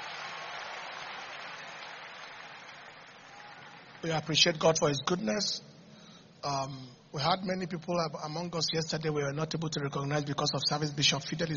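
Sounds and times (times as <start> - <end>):
audience clapping hands: 0.0 - 4.6
speech: 4.0 - 5.7, 6.4 - 11.5.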